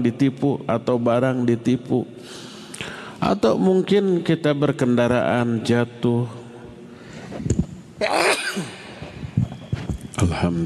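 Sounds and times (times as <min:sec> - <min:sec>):
speech: 0:00.0 - 0:02.5, 0:03.2 - 0:06.4, 0:07.4 - 0:08.7, 0:10.3 - 0:10.6
sharp intake of breath: 0:02.2 - 0:03.2
person sneezing: 0:08.0 - 0:09.0.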